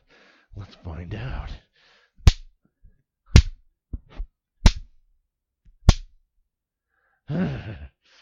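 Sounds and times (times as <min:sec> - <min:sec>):
speech: 0:00.6 - 0:01.7
hand slapping skin: 0:02.2 - 0:02.6, 0:03.3 - 0:05.0, 0:05.8 - 0:06.2.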